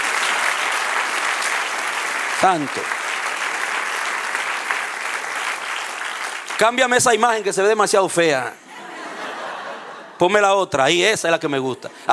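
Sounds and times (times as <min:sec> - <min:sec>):
audience applauding loudly: 0:00.0 - 0:07.5
speech: 0:02.4 - 0:03.0, 0:06.6 - 0:08.6, 0:10.2 - 0:12.1
laughter: 0:08.6 - 0:10.3.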